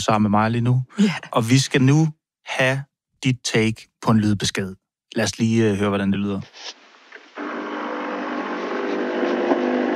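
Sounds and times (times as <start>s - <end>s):
speech: 0.0s - 6.8s
coffee machine brewing: 7.4s - 9.9s.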